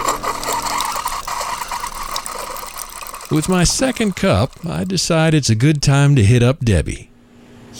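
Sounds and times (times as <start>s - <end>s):
air conditioning water output: 0.1s - 5.3s
speech: 3.4s - 7.1s.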